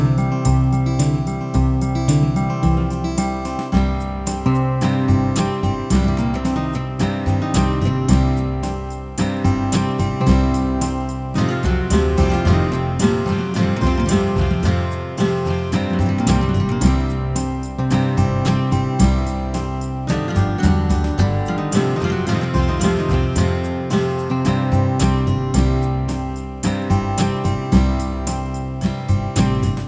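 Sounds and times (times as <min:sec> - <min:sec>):
12 bar blues music: 0:00.0 - 0:29.8.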